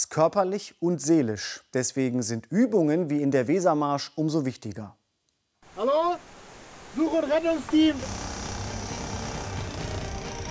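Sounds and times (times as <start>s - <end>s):
speech: 0.0s - 5.0s, 5.8s - 6.2s, 7.0s - 8.3s
sawing through wooden boards: 7.4s - 10.4s.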